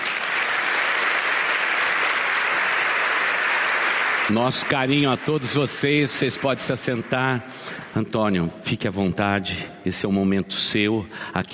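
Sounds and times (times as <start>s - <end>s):
church audience applause: 0.0s - 7.8s
speech: 4.3s - 11.5s.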